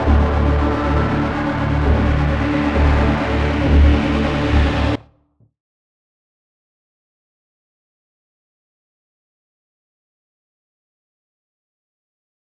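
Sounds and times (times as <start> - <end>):
electronic music: 0.0 - 5.0.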